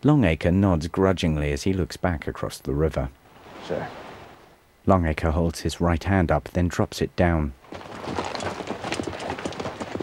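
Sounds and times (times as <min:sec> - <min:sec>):
speech: 0:00.0 - 0:04.0, 0:04.8 - 0:08.3
horses' hooves moving onto a rocky shore: 0:07.6 - 0:10.0.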